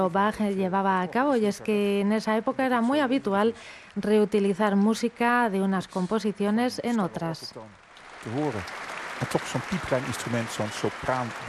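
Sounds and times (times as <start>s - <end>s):
speech: 0.0s - 11.4s
enthusiastic applause in a concert hall: 8.0s - 11.4s.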